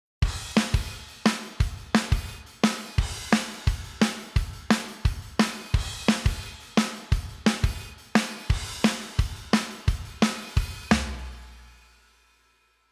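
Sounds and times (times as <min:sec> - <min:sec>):
drum: 0:00.2 - 0:11.9.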